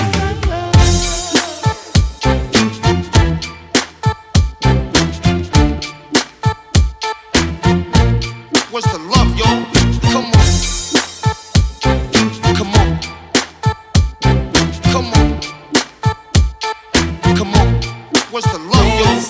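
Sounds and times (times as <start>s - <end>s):
bass house music: 0.0s - 19.2s
rapping: 8.7s - 10.4s, 12.3s - 13.1s, 14.8s - 15.4s, 17.3s - 19.2s.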